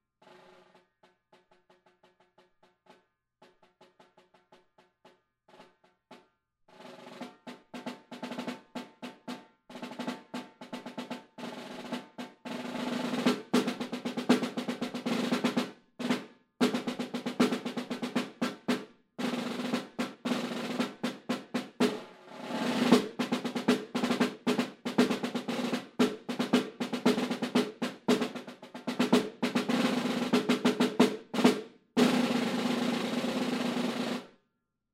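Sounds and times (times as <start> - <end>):
snare drum: 6.7 - 34.3.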